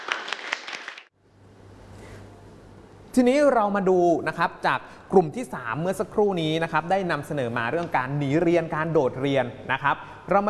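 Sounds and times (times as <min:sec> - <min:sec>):
audience applause: 0:00.0 - 0:01.1
speech: 0:03.2 - 0:10.4.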